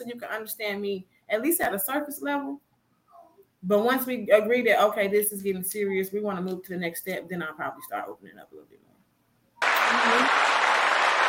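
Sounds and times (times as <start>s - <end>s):
speech: 0.0s - 2.7s, 3.6s - 8.9s
hands clapping: 9.6s - 11.2s.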